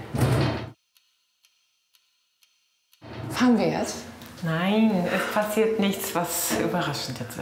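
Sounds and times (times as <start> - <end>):
door being closed with a rushing sliding swoosh: 0.1 - 0.7, 3.1 - 3.9
speech: 3.4 - 7.4.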